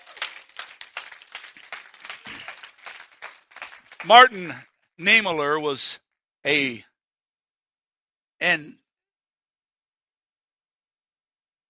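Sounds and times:
crowd clapping in praise: 0.0s - 4.7s
speech: 4.0s - 6.9s, 8.4s - 8.8s.

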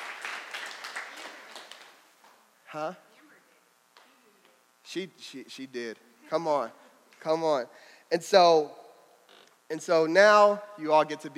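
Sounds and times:
audience clapping: 0.0s - 2.2s
speech: 2.7s - 3.1s, 4.9s - 8.8s, 9.7s - 11.3s.

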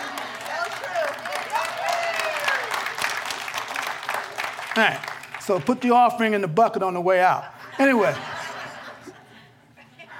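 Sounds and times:
laughter: 0.0s - 1.2s, 7.2s - 10.1s
audience clapping: 0.0s - 6.4s
speech: 4.8s - 8.3s.

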